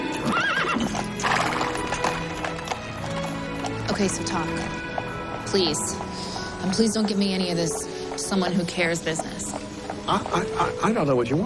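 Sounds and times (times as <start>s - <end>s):
horse whinny: 0.0s - 2.1s
hooves of a horse pulling a carriage clip-clopping: 0.0s - 11.4s
speech: 4.0s - 4.8s, 5.5s - 9.5s, 10.1s - 11.4s.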